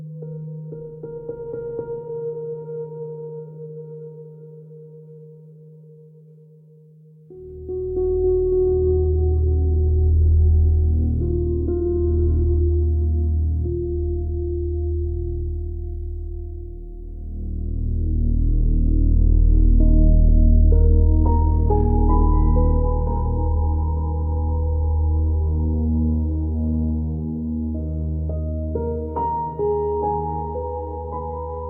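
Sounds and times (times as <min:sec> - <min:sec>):
quiet restless psychological dark ambient music: 0:07.3 - 0:31.6.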